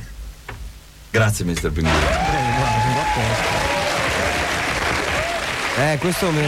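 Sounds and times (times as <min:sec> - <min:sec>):
speech: 0:01.2 - 0:03.8, 0:05.8 - 0:06.4
applause: 0:02.0 - 0:06.4.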